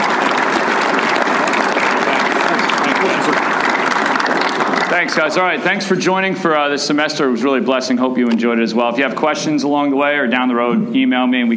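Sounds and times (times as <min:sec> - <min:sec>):
applause: 0:00.0 - 0:06.6
speech: 0:04.9 - 0:11.5.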